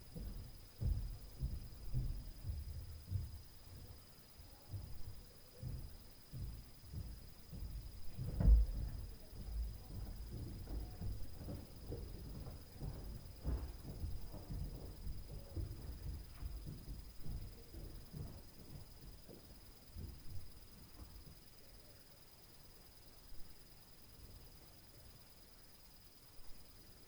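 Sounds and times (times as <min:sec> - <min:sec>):
stairs noise: 0:00.1 - 0:21.1.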